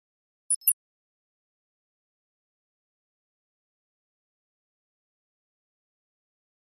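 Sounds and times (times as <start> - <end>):
electronic flash beep: 0.5 - 0.7.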